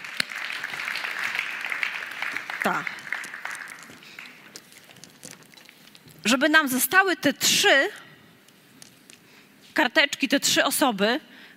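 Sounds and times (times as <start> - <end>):
audience clapping: 0.0 - 5.1
speech: 2.6 - 3.0, 6.3 - 8.0, 9.8 - 11.3.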